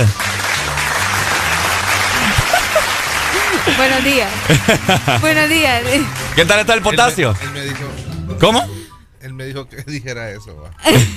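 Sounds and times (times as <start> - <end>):
audience applause: 0.0 - 8.2
laughter: 0.4 - 6.0
speech: 3.7 - 11.1.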